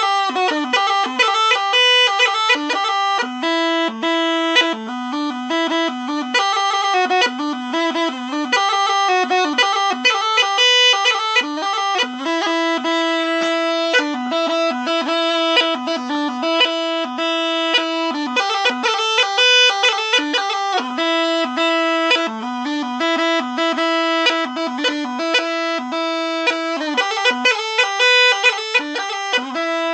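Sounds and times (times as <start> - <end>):
Rhodope kaba gajda bagpipe playing: 0.0 - 29.9.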